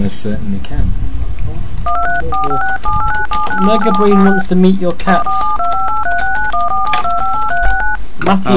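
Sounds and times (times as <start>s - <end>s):
speech: 0.0s - 6.2s, 8.3s - 8.5s
telephone touch-tone beeps: 1.9s - 4.5s, 5.1s - 8.0s.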